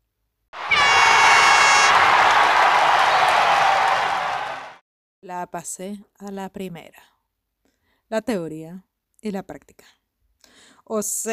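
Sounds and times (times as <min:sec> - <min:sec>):
bright horn-like tone: 0:00.6 - 0:02.0
applause sound effect: 0:00.6 - 0:04.8
speech: 0:05.3 - 0:07.1, 0:08.1 - 0:11.3.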